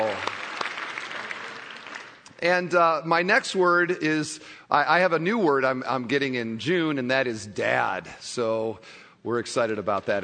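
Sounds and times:
audience applause: 0:00.0 - 0:02.3
speech: 0:02.4 - 0:10.2.

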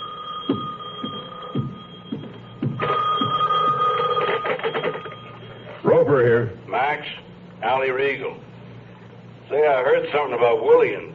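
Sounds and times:
telephone bell ringing: 0:00.0 - 0:05.9
speech: 0:06.2 - 0:08.5, 0:09.5 - 0:11.1.

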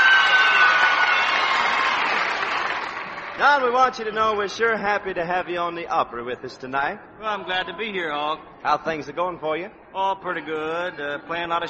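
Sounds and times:
Grand Ole Opry crowd cheering and applauding: 0:00.0 - 0:04.1
speech: 0:03.4 - 0:11.6.

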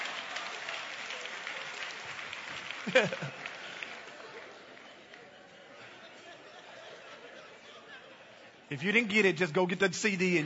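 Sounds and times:
audience applause: 0:00.0 - 0:05.8
speech: 0:02.8 - 0:03.4, 0:08.7 - 0:10.4
laughter: 0:02.8 - 0:10.4.

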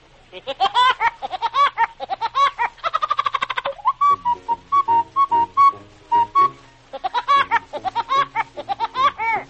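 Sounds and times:
cartoon woodpecker cackling laugh-like syllables: 0:00.4 - 0:04.0, 0:06.4 - 0:09.4
short steady whistled notes: 0:03.8 - 0:06.9.

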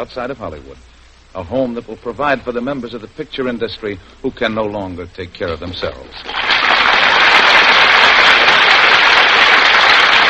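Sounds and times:
speech: 0:00.0 - 0:06.6
studio audience applause: 0:06.2 - 0:10.2.

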